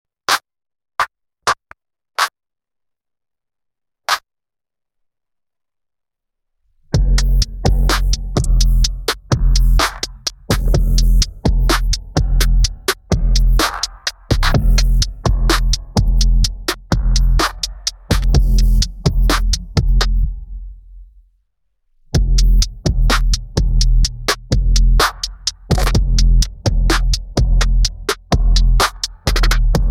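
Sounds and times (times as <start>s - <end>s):
instrumental music: 6.8s - 29.8s.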